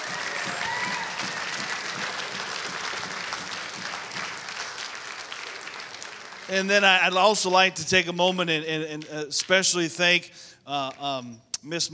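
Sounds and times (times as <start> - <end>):
audience applause for graduates: 0.0 - 7.2
speech: 6.5 - 11.9.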